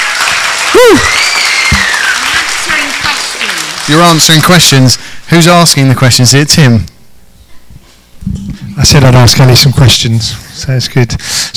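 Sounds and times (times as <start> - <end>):
audience applause: 0.0 - 4.8
speech: 0.8 - 1.3, 3.9 - 6.9, 8.8 - 11.5.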